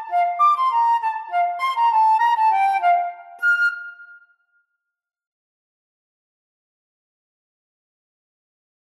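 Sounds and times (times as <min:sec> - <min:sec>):
flute duet: 0:00.0 - 0:04.6.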